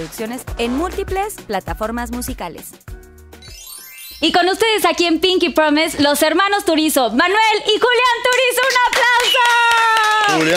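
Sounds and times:
speech: 0.0s - 2.9s, 4.2s - 10.5s
applause: 7.3s - 10.5s
whoops and cheering voices: 8.6s - 10.5s.

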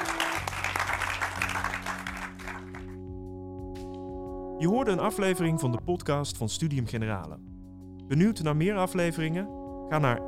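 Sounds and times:
audience applause: 0.0s - 3.0s
speech: 4.6s - 7.5s, 8.1s - 10.2s.

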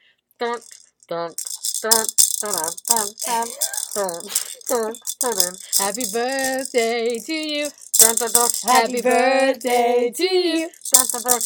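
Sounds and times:
speech: 0.4s - 11.4s
maraca rattling: 0.6s - 11.4s.

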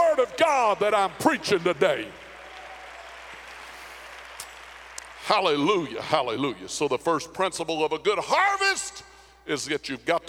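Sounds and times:
speech: 0.1s - 2.2s, 5.3s - 10.2s
audience clapping hands: 0.8s - 5.9s.

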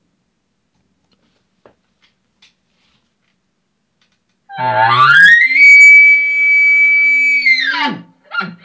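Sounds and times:
elk challenge bugle blown on a game call: 4.5s - 8.0s.

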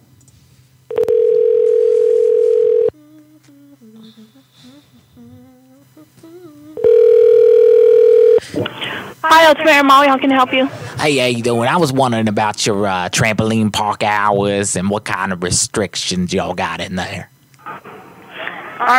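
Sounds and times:
telephone ringing tones: 0.9s - 3.0s, 6.8s - 8.4s
speech: 9.5s - 17.3s, 18.8s - 18.9s.

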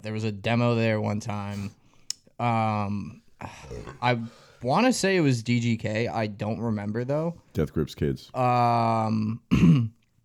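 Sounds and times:
speech: 0.0s - 1.8s, 2.4s - 10.0s
loud burp: 9.3s - 10.0s.

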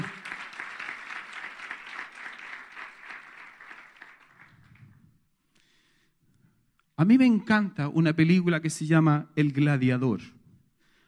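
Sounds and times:
audience applauding: 0.0s - 4.9s
speech: 7.0s - 10.4s.

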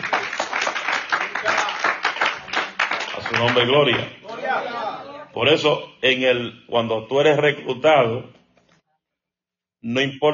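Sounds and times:
audience applause: 0.0s - 4.6s
speech: 3.3s - 4.7s, 5.4s - 8.4s, 9.8s - 10.3s.

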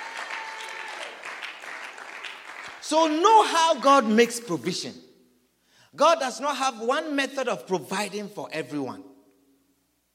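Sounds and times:
crowd clapping hands: 0.0s - 2.9s
speech: 2.9s - 5.1s, 6.0s - 9.1s.

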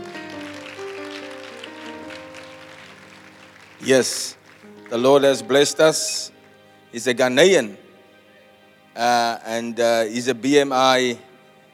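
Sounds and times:
crowd clapping: 0.0s - 6.6s
sustained low musical tones: 0.0s - 11.7s
speech: 3.8s - 6.3s, 6.9s - 7.8s, 9.0s - 11.3s.

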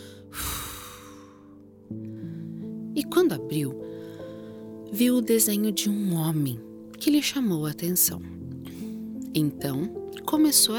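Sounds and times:
puff of air blowing dust off an old book found in a chest: 0.0s - 1.5s
soft music: 0.0s - 10.7s
speech: 3.0s - 3.9s, 4.9s - 8.8s, 9.4s - 10.7s.

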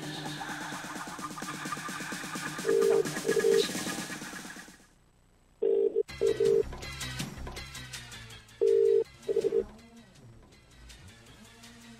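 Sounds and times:
telephone ringing tone of outgoing call: 2.7s - 3.6s, 5.6s - 6.6s, 8.6s - 9.6s.

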